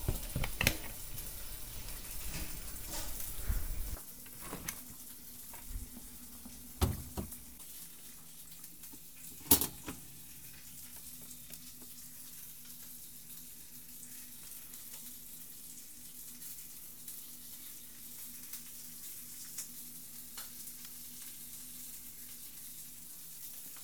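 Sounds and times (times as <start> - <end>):
cooking sounds: 0.0 - 12.0.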